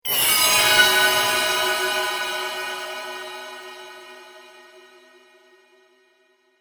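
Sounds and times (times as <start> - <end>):
eerie dark metallic chimes: 0.1 - 4.7.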